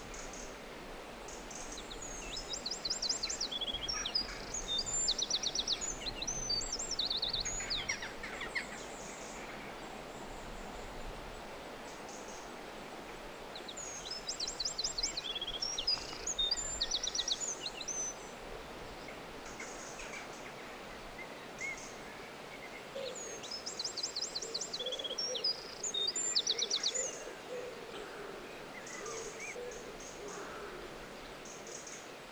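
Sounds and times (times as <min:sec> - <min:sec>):
hiss: 0:00.0 - 0:32.3
bird song: 0:01.3 - 0:10.8, 0:13.5 - 0:18.2, 0:21.2 - 0:32.1.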